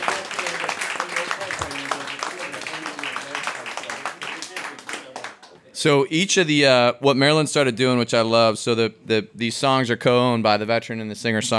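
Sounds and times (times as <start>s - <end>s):
audience applause: 0.0s - 5.6s
speech: 5.8s - 11.5s.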